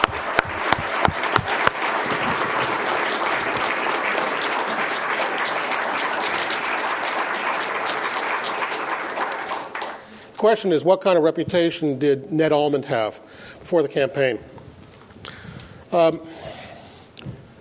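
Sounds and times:
audience applause: 0:00.0 - 0:10.2
speech: 0:10.4 - 0:14.6, 0:15.9 - 0:16.6.

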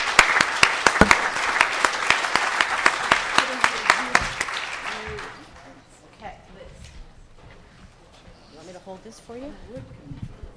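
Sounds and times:
audience applause honoring the regional centers: 0:00.0 - 0:05.7.

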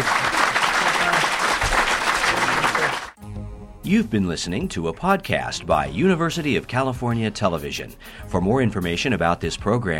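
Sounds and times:
audience applause: 0:00.0 - 0:03.2
speech: 0:03.8 - 0:09.9.

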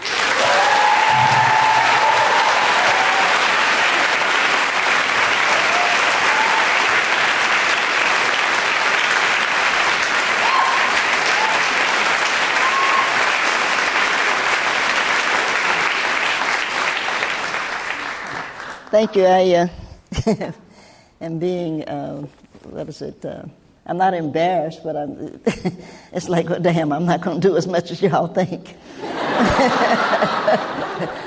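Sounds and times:
Writers' Symposium audience applause welcoming poet Nikki Giovanni: 0:00.0 - 0:18.9
speech: 0:19.0 - 0:20.6, 0:21.2 - 0:31.2
laughter: 0:29.0 - 0:31.2.

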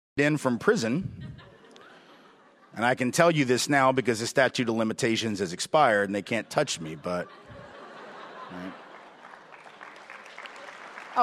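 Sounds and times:
speech: 0:00.2 - 0:01.4, 0:02.8 - 0:07.4, 0:08.5 - 0:08.8
laughter: 0:00.8 - 0:03.7, 0:06.0 - 0:09.8, 0:10.4 - 0:11.2
audience applause: 0:08.2 - 0:11.2.

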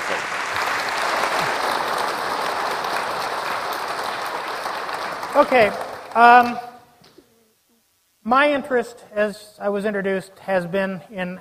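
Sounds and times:
audience applause welcoming two speakers to a talk: 0:00.0 - 0:06.7
speech: 0:05.4 - 0:06.7, 0:08.2 - 0:11.3.

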